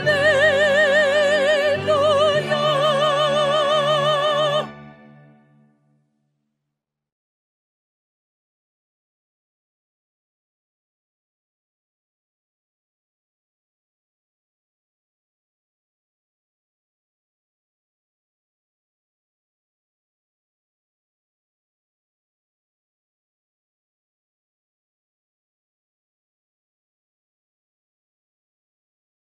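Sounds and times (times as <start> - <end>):
soprano singing for audition practice: 0.0 - 5.2.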